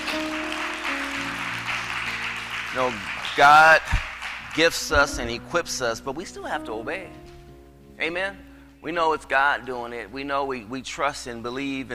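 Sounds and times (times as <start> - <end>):
church congregation clapping for a praise team: 0.0 - 5.6
sustained keyboard chords: 0.0 - 10.2
speech: 2.8 - 7.2, 8.0 - 11.9.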